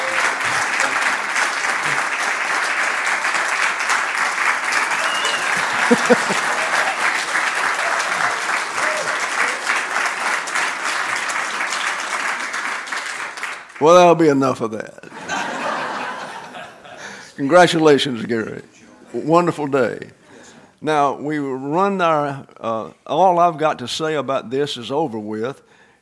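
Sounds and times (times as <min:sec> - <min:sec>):
audience applause: 0:00.0 - 0:13.9
laughter: 0:04.9 - 0:09.8, 0:15.0 - 0:17.2
speech: 0:05.9 - 0:06.5, 0:13.8 - 0:15.1, 0:17.4 - 0:20.2, 0:20.8 - 0:25.7.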